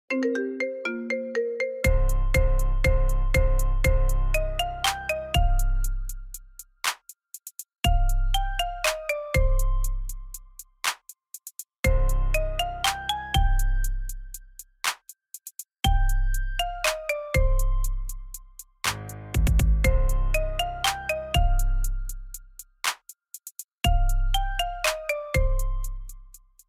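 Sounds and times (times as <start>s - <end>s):
marimba remix: 0.1s - 6.3s, 7.9s - 10.5s, 11.8s - 14.0s, 15.9s - 18.4s, 19.0s - 22.3s, 23.9s - 26.2s.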